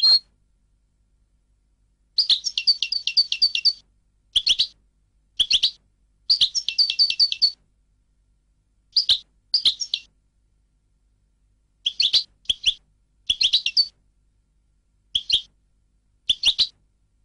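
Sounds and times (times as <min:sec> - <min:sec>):
European goldfinch chirping: 0:00.0 - 0:00.2, 0:02.2 - 0:03.8, 0:04.4 - 0:04.7, 0:05.4 - 0:07.6, 0:08.9 - 0:10.1, 0:11.9 - 0:13.9, 0:15.2 - 0:15.5, 0:16.3 - 0:16.7.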